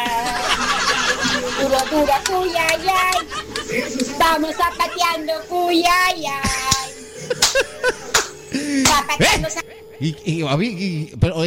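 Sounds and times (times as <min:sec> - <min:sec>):
laughter: 0:00.0 - 0:10.7
hand clapping: 0:01.2 - 0:04.9, 0:06.4 - 0:09.1
speech: 0:01.6 - 0:11.4.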